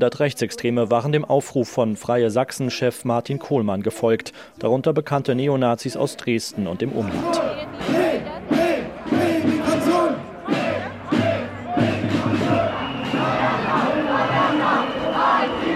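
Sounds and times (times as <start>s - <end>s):
speech: 0.0s - 8.0s
protest crowd chanting: 5.9s - 15.7s.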